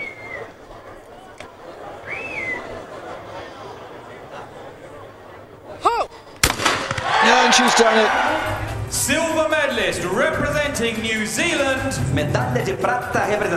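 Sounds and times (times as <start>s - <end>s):
laughter: 0.5s - 6.3s, 7.2s - 10.5s
gunshot in the Rio 2016 Olympic shooting gold-medal match: 6.4s - 7.2s
commentary speech: 7.2s - 13.5s
speech: 7.5s - 13.5s.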